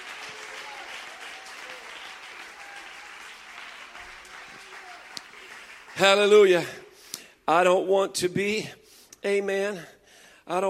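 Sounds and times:
audience clapping: 0.0s - 6.8s
speech: 6.0s - 6.8s, 7.5s - 10.6s.

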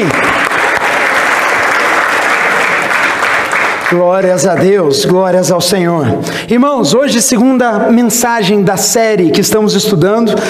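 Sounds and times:
applause: 0.0s - 5.1s
speech: 3.9s - 10.4s.

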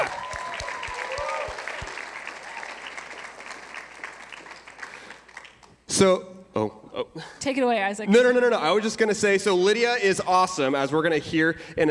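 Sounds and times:
people cheering: 0.0s - 4.8s
crowd applauding: 0.0s - 5.7s
speech: 6.0s - 11.8s.

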